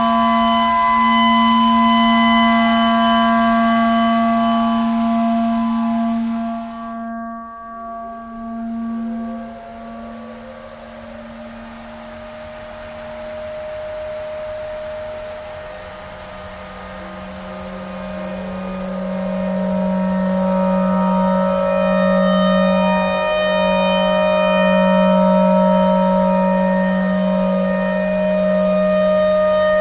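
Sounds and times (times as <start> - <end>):
clarinet: 0.0 - 29.8
tornado siren: 0.0 - 29.8.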